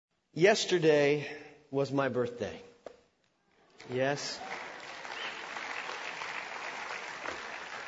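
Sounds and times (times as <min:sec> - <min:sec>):
speech: 0:00.4 - 0:02.7, 0:03.8 - 0:04.6
audience applause: 0:03.8 - 0:07.8.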